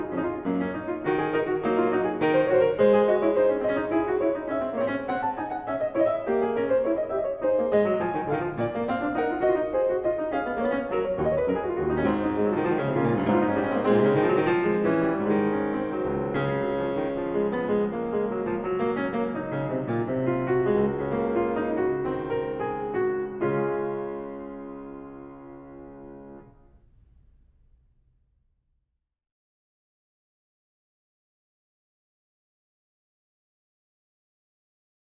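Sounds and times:
keyboard prelude and fugue in C-sharp major: 0:00.0 - 0:26.6.

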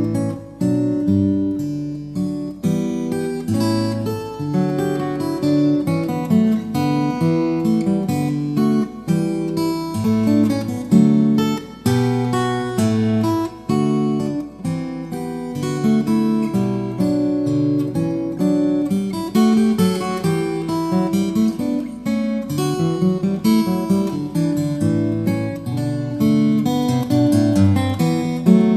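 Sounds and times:
steel string guitar piece: 0:00.0 - 0:28.7.

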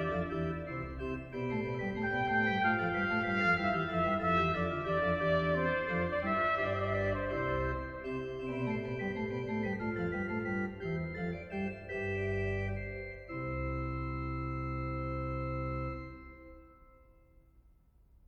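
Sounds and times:
trumpet: 0:00.0 - 0:10.5
organ: 0:00.0 - 0:17.0.

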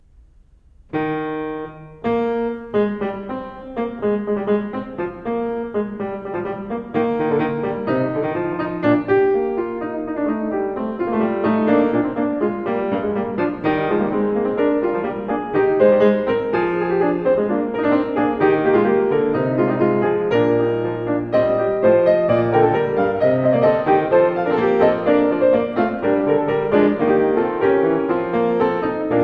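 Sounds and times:
keyboard fugue in E-flat major: 0:00.0 - 0:29.2.

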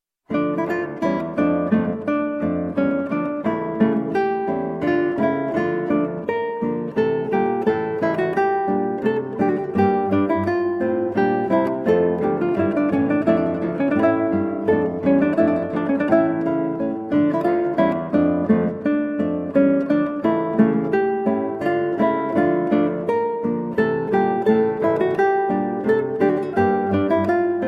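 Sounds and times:
guitar playing a minuet: 0:00.3 - 0:27.6.

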